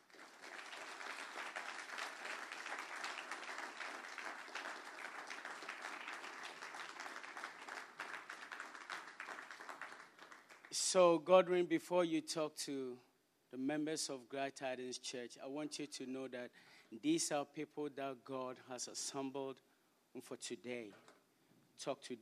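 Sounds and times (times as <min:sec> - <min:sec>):
church audience applause welcoming a guest speaker: 0:00.0 - 0:10.8
speech: 0:10.8 - 0:21.1, 0:21.8 - 0:22.2.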